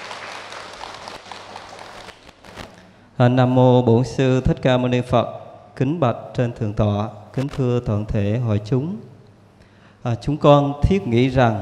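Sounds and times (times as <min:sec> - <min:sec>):
audience applause: 0:00.0 - 0:02.4
speech: 0:03.2 - 0:09.1, 0:10.0 - 0:11.6.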